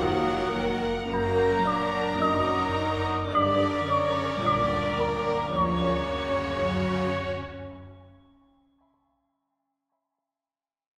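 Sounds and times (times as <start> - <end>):
orchestral horror music: 0.0 - 8.3.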